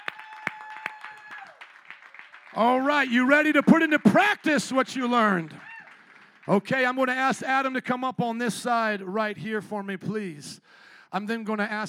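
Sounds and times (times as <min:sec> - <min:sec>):
audience hand clapping: 0:00.0 - 0:07.4
speech: 0:02.5 - 0:05.7, 0:06.5 - 0:11.8.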